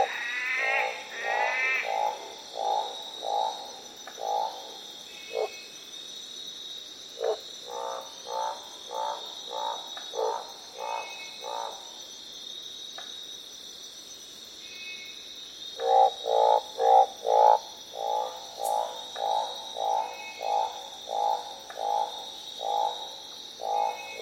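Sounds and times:
orange thighed treefrog croaks: 0.0s - 5.6s, 7.2s - 12.0s, 15.6s - 24.2s.

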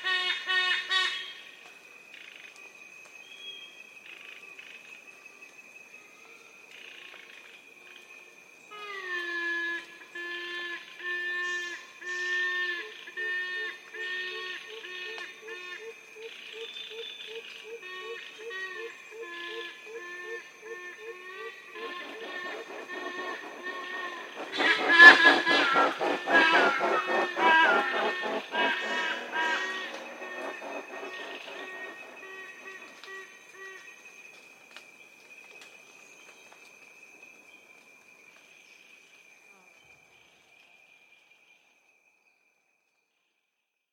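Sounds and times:
steady high insect whine: 0.2s - 42.5s
yellow-casqued hornbills honking: 21.8s - 33.1s.

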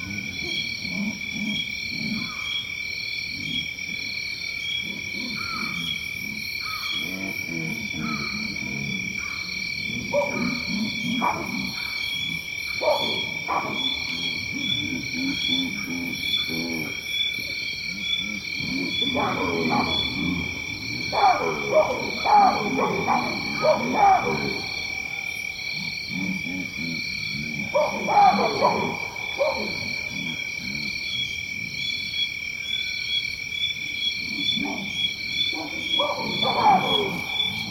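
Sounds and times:
lion in Tanzania: 0.0s - 32.4s, 33.6s - 37.6s
monkeys in Tanzania: 10.0s - 31.0s, 34.2s - 37.6s.

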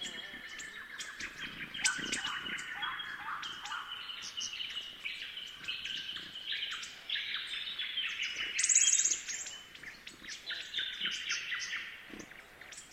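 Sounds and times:
magpies calling: 0.0s - 12.9s
thornbills chirping: 0.0s - 12.9s
kookaburra calling: 1.8s - 4.2s.

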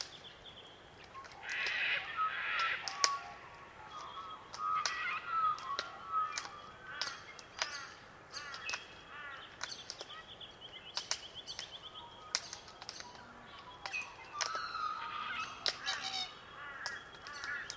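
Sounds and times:
glossy black cockatoo calls: 1.2s - 9.5s, 13.1s - 17.7s.

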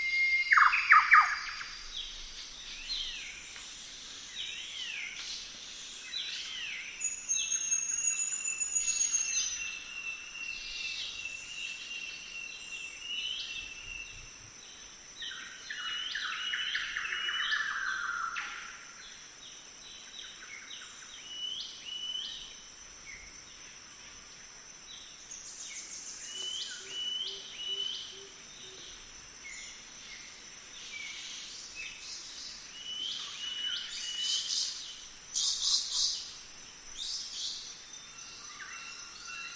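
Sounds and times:
golden whistler bird singing: 0.0s - 3.5s, 4.3s - 14.3s, 15.2s - 23.3s, 25.0s - 39.5s.

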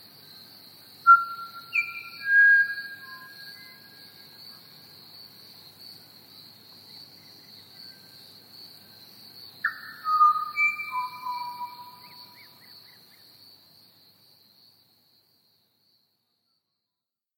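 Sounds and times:
Pied Butcherbird whistling: 1.1s - 3.8s, 9.7s - 12.4s.

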